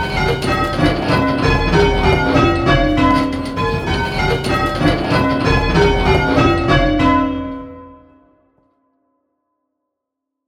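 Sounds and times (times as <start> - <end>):
bells in the Lydian mode: 0.0 - 8.3.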